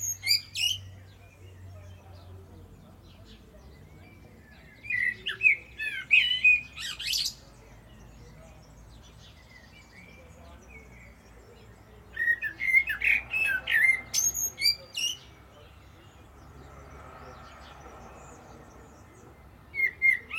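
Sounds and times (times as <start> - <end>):
common blackbird song: 0.0 - 20.3.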